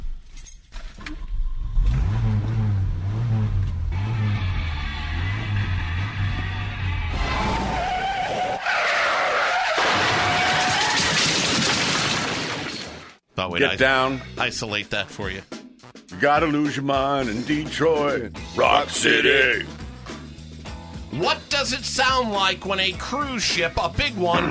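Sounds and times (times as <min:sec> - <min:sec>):
car engine revving and droning: 0:01.6 - 0:08.2
tires skidding and screeching: 0:03.9 - 0:10.9
car crash with shattering debris: 0:09.6 - 0:13.2
speech: 0:13.4 - 0:15.5, 0:16.2 - 0:19.8, 0:21.1 - 0:24.4.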